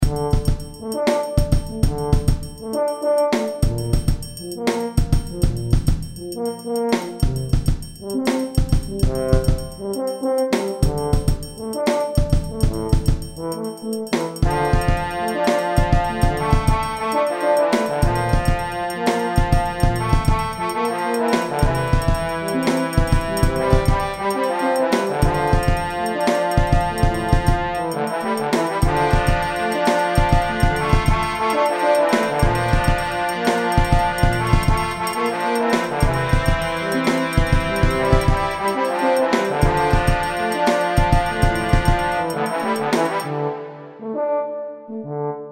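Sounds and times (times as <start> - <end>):
orchestra: 0.0 - 45.4.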